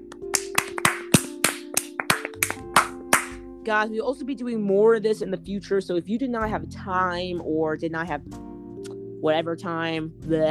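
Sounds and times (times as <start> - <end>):
round of applause: 0.1 - 3.4
speech: 3.7 - 8.4, 9.2 - 10.4.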